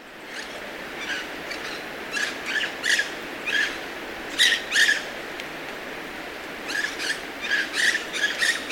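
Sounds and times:
white-breasted parakeets screeching in Ecuador: 0.3 - 5.0, 6.7 - 8.7.

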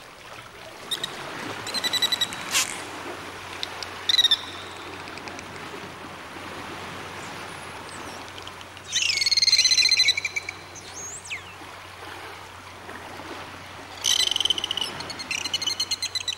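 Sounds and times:
sea waves: 0.0 - 16.3
dolphins clicking: 0.8 - 6.0, 7.8 - 10.7.

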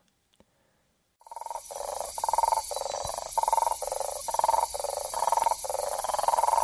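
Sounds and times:
South American common toad calling in the Ecuadorian Amazon: 1.2 - 6.6.

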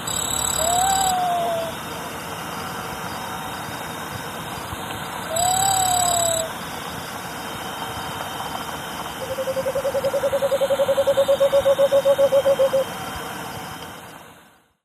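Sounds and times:
cinnamon screech owl hooting in Ecuador: 0.0 - 2.0, 5.2 - 6.6, 9.2 - 12.9.

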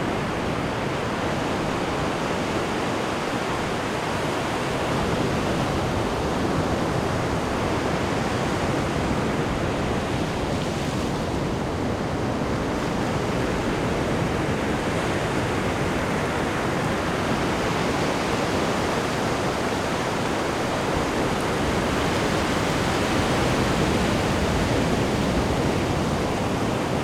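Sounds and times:
big surf ocean waves: 0.0 - 27.0.

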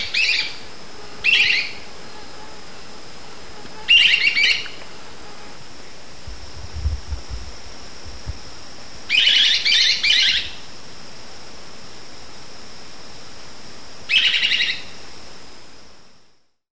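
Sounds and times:
Yellow-throated Flycatcher calling in South American Eastern Lowlands: 0.0 - 6.2, 8.9 - 10.8, 14.0 - 15.0.

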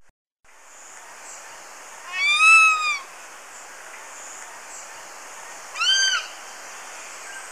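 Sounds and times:
Black-and-chestnut eagle calling in Ecuador: 2.1 - 3.1, 5.7 - 7.4.

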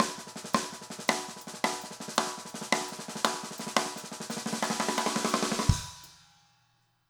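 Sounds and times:
170 BPM jungle drum fill: 0.0 - 6.2.

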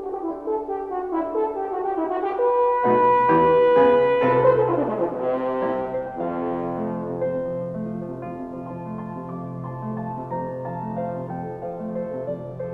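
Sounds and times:
horn: 0.0 - 8.2
piano: 0.0 - 12.7.

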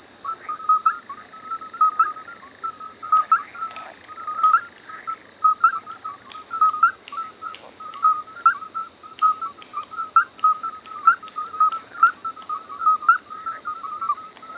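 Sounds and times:
crickets chirping at night in a wasteland: 0.0 - 14.5
grasshoppers chirping at night in a wasteland: 3.1 - 14.5.

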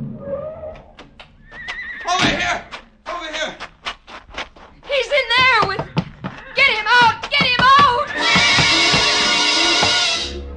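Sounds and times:
horse screaming and whinnying in a stall: 0.2 - 2.7, 6.3 - 10.4
hooves striking wooden boards: 0.8 - 10.3.

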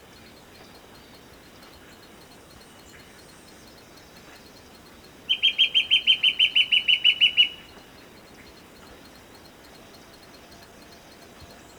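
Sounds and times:
white-backed fire-eye whistled song in Ecuador: 5.3 - 7.6.

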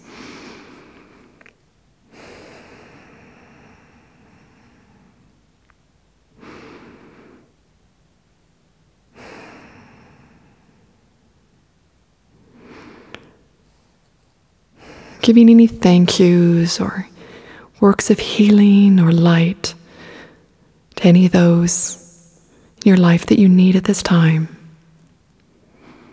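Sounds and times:
person taking slow deep breaths: 0.0 - 5.5, 6.3 - 7.6, 9.1 - 11.4, 12.3 - 14.0, 14.7 - 15.7, 16.3 - 17.8, 19.7 - 22.8, 24.5 - 26.1
speech: 15.2 - 17.1, 17.8 - 19.8, 21.0 - 22.0, 22.8 - 24.6.

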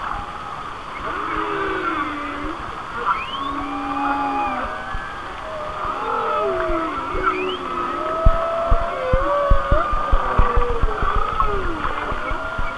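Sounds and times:
whale moans and squeals: 1.0 - 12.7.

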